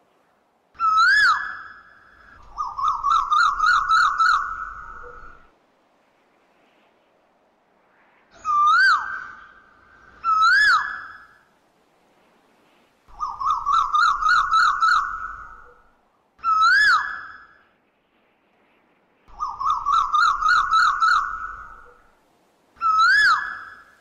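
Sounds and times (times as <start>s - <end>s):
Asian koel swooping and rising-falling whistled calls: 0.8s - 5.5s, 8.4s - 11.5s, 13.1s - 17.6s, 19.3s - 22.1s, 22.8s - 24.0s.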